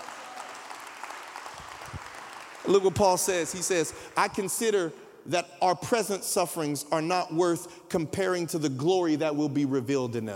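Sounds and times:
audience clapping: 0.0 - 4.3
speech: 2.6 - 10.3.

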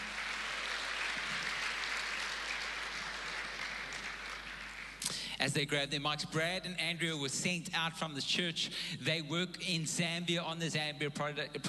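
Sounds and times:
church congregation applauding to welcome guests: 0.0 - 5.3
speech: 5.4 - 11.6.

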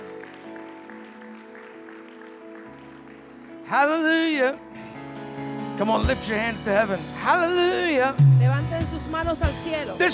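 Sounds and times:
audience applauding: 0.0 - 4.4
speech: 3.7 - 4.8, 5.8 - 10.1.

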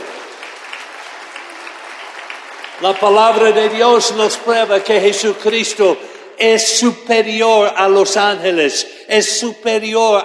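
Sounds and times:
applause: 0.0 - 5.8
speech: 2.8 - 10.2.

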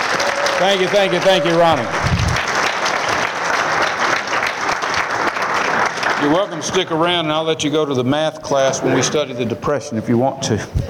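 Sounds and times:
crowd applauding a performer: 0.0 - 7.2
speech: 0.6 - 2.0, 6.2 - 10.8.

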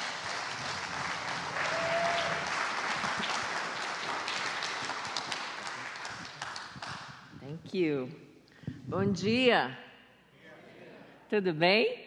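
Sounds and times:
audience applause: 0.0 - 7.3
speech: 7.7 - 8.2, 8.9 - 9.8, 11.3 - 12.0.

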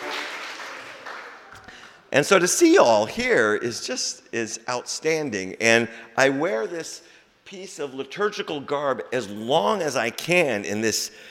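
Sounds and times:
audience applause: 0.0 - 1.9
speech: 2.1 - 11.2.

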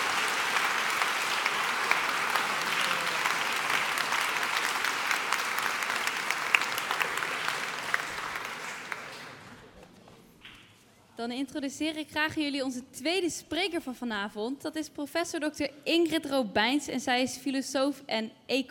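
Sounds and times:
audience applause: 0.0 - 9.7
speech: 11.2 - 18.6.

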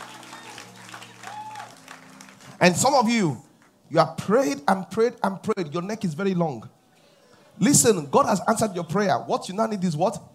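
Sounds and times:
audience clapping: 0.0 - 3.8
speech: 2.6 - 6.8, 7.6 - 10.3.

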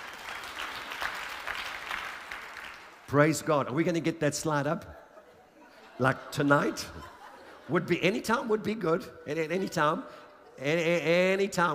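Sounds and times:
audience applause: 0.0 - 3.0
speech: 3.1 - 5.0, 6.0 - 7.1, 7.7 - 11.7
laughter: 5.0 - 8.8.

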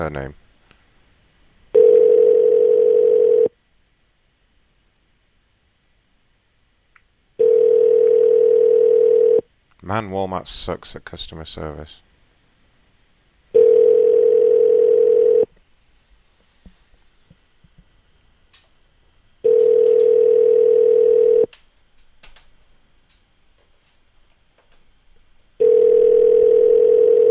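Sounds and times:
speech: 0.0 - 0.4, 9.8 - 12.1
telephone dial tone from a broken phone system: 1.8 - 3.5, 7.4 - 9.4, 13.6 - 15.5, 19.4 - 21.5, 25.6 - 27.2.

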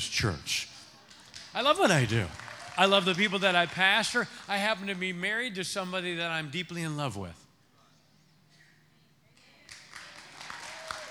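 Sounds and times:
speech: 0.0 - 0.6, 1.6 - 7.4
audience applause: 1.3 - 5.2, 9.7 - 11.0.

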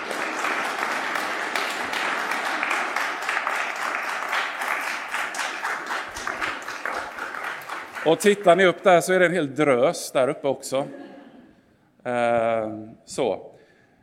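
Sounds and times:
applause: 0.0 - 9.2
speech: 8.0 - 11.0, 12.0 - 13.5
laughter: 10.7 - 11.6.

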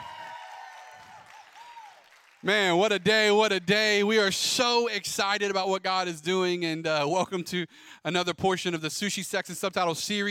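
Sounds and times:
audience cheering and applause: 0.0 - 4.0
speech: 2.4 - 10.2.

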